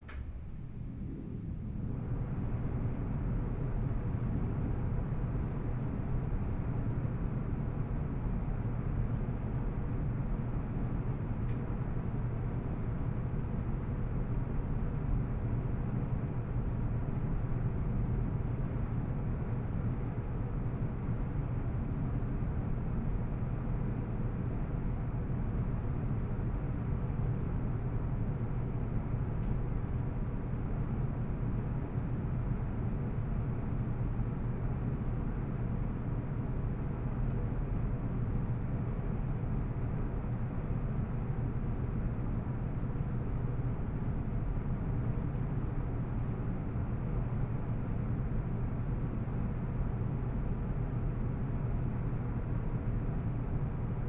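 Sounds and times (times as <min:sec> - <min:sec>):
air conditioner vent smooth low-range rush of air: 0:00.0 - 0:54.0.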